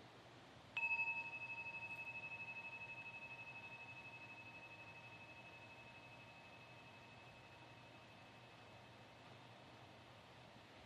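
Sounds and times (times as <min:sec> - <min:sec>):
meditation bell ringing: 0:00.8 - 0:09.2.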